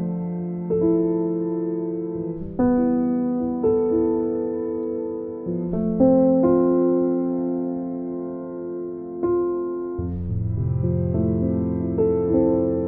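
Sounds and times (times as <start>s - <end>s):
serene meditation piano music: 0.0s - 12.8s.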